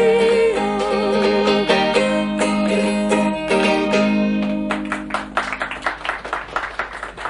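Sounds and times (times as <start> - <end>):
sung song with instruments: 0.0 - 5.9
small audience applause: 4.3 - 7.2.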